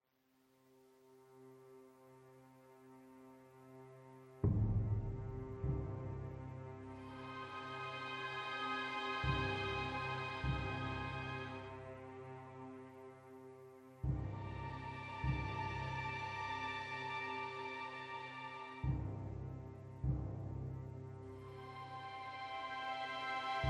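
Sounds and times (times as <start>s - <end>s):
suspense music loop: 4.4s - 23.6s.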